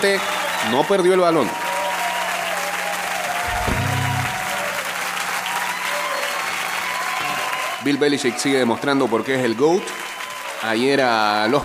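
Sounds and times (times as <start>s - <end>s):
speech: 0.0s - 1.6s, 7.8s - 10.0s, 10.6s - 11.6s
crowd applauding: 0.0s - 11.6s
low thump: 3.5s - 4.6s.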